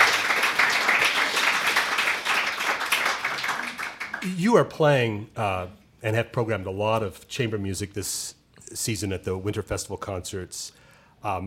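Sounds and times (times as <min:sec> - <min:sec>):
audience applause: 0:00.0 - 0:04.3
speech: 0:04.2 - 0:11.4.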